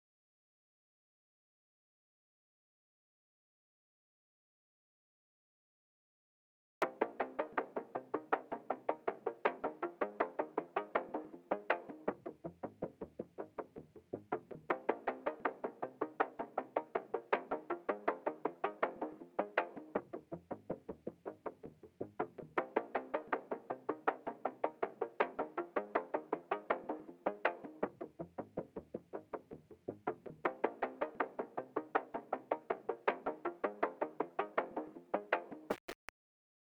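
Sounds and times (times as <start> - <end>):
bass: 6.8 - 35.9.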